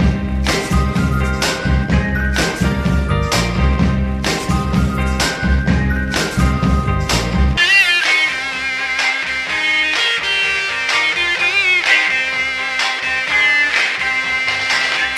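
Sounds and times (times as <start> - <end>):
phonk music loop: 0.0 - 15.1.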